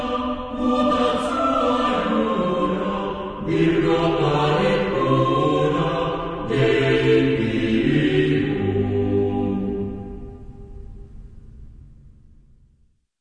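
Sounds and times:
chamber choir singing: 0:00.0 - 0:10.4.

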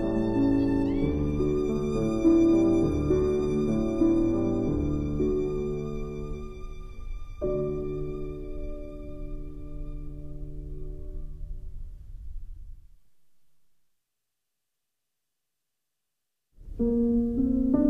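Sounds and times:
violin: 0:00.0 - 0:11.3
piano: 0:00.0 - 0:13.8, 0:16.6 - 0:17.8.

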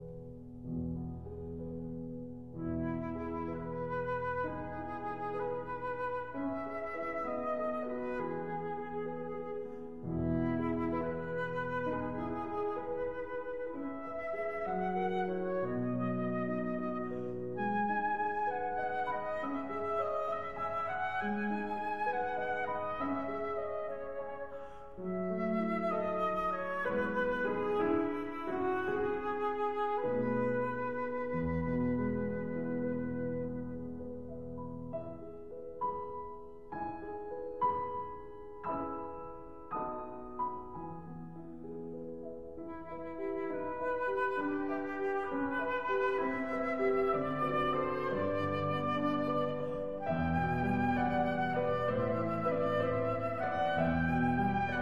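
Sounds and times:
flute and piano lullaby: 0:00.0 - 0:54.8.

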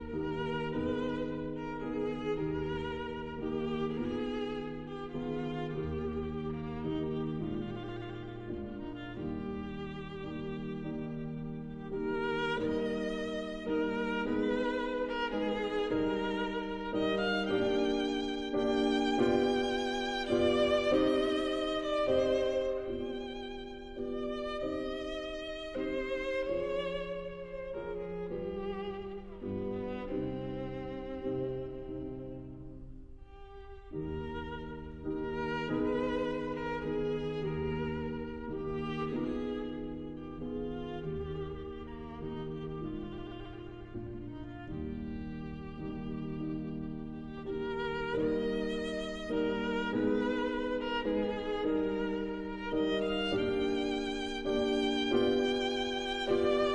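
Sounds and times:
violin and piano: 0:00.0 - 0:56.7.

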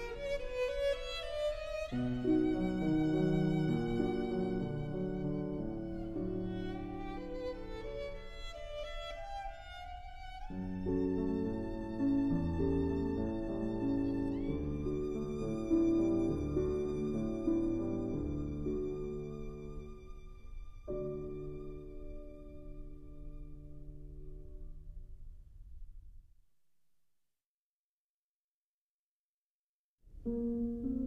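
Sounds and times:
violin: 0:00.0 - 0:24.6
piano: 0:00.0 - 0:26.3, 0:30.1 - 0:31.0.

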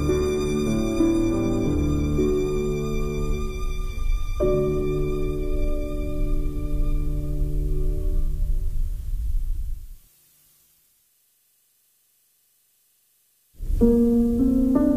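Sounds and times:
violin: 0:00.0 - 0:08.7
piano: 0:00.0 - 0:09.8, 0:13.6 - 0:14.9.

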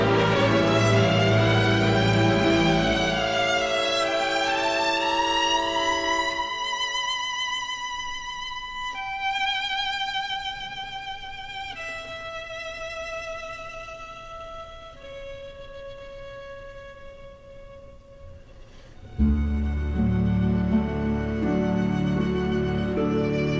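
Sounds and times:
orchestra playing: 0:00.0 - 0:07.2, 0:19.0 - 0:23.5
solo violin: 0:00.0 - 0:23.5.

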